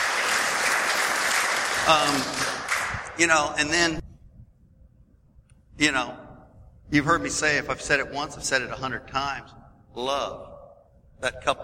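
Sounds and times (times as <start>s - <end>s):
audience applause: 0.0s - 3.1s
speech: 1.9s - 2.5s, 3.2s - 4.0s, 5.8s - 6.2s, 6.9s - 10.5s, 11.2s - 11.6s.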